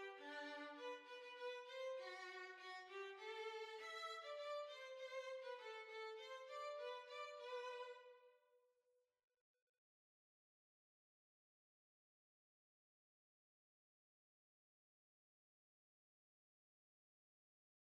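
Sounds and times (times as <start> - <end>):
violin playing a polka: 0.0 - 8.3.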